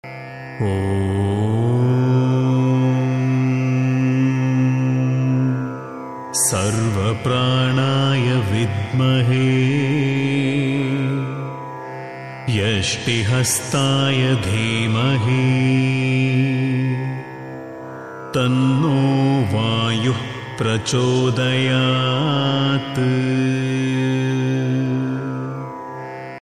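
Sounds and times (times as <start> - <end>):
mantra chanting: 0.5 - 17.5, 18.3 - 25.8.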